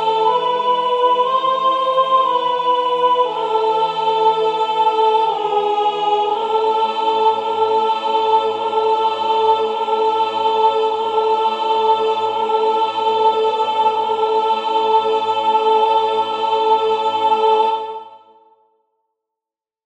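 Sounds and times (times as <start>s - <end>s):
soprano singing sacred music: 0.0s - 18.6s.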